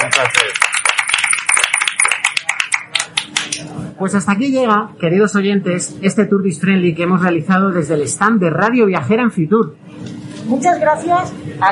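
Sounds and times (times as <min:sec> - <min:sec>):
crowd applause: 0:00.0 - 0:03.6
speech: 0:04.0 - 0:11.7.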